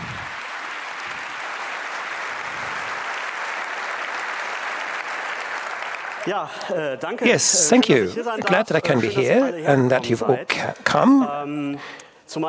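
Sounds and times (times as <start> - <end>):
audience applause: 0.0 - 8.8
speech: 6.2 - 12.4.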